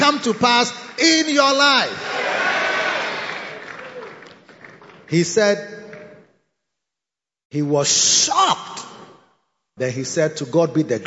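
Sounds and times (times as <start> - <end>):
audience clapping: 0.0 - 6.3
speech: 0.1 - 2.1, 5.1 - 5.8, 7.5 - 8.8, 9.8 - 11.0.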